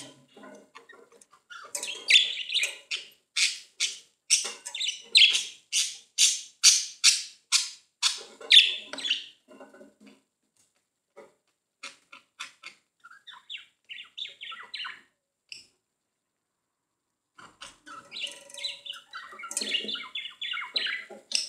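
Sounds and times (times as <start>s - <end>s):
budgerigar chirping and warbling: 1.4s - 9.3s, 11.8s - 15.1s, 17.6s - 21.4s.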